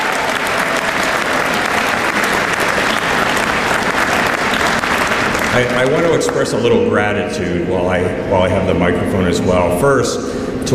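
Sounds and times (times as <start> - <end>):
audience applause: 0.0 - 6.7
speech: 5.6 - 10.7.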